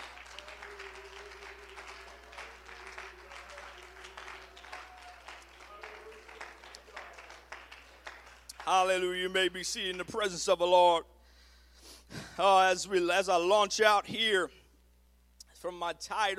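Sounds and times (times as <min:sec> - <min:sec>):
audience clapping: 0:00.0 - 0:10.4
speech: 0:08.7 - 0:11.1, 0:12.4 - 0:14.6, 0:15.6 - 0:16.3.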